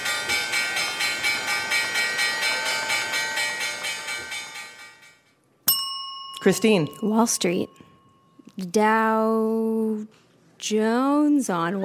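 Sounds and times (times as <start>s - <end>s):
stock exchange opening bell clanging: 0.0s - 8.7s
speech: 6.4s - 7.9s, 8.6s - 11.8s.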